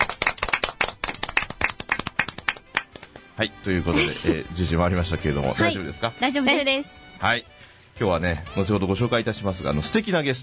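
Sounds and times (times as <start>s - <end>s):
small group clapping: 0.0s - 3.3s
speech: 3.4s - 10.4s
laughter: 3.8s - 4.8s.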